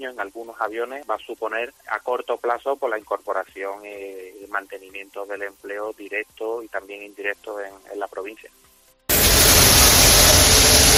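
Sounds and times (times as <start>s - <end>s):
speech: 0.0s - 8.7s
street sweeper machine running: 9.1s - 10.9s.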